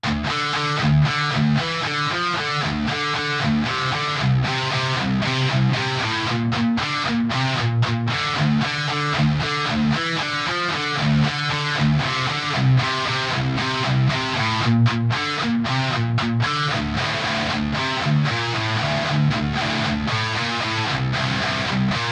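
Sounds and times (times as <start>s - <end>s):
instrumental guitars: 0.0s - 22.1s.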